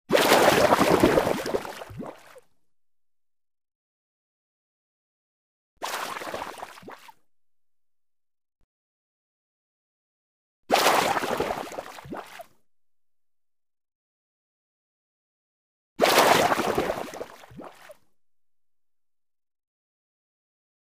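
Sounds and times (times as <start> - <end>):
water splash: 0.1 - 2.4, 5.8 - 7.2, 10.7 - 12.5, 16.0 - 18.0.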